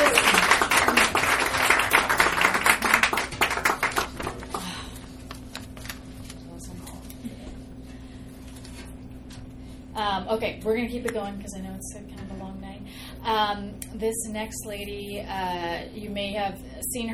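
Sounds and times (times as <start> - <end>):
audience applause: 0.0 - 5.0
speech: 10.4 - 12.4, 13.3 - 17.1.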